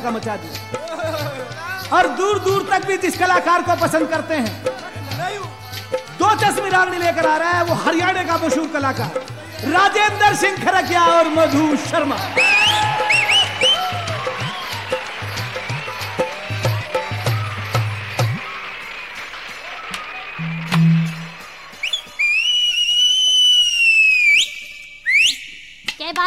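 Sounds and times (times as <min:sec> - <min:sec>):
speech: 0:00.0 - 0:04.9, 0:06.3 - 0:12.7
noisy bustling crowd: 0:00.0 - 0:26.2
sharp claps: 0:11.5 - 0:22.2
person whistling: 0:12.4 - 0:15.0, 0:20.4 - 0:25.9.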